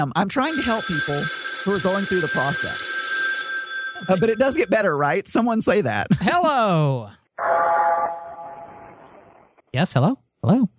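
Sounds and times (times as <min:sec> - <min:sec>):
speech: 0:00.0 - 0:02.9, 0:04.0 - 0:07.5, 0:09.7 - 0:10.7
bell on the haunted Redwoods train tolling: 0:00.5 - 0:04.8.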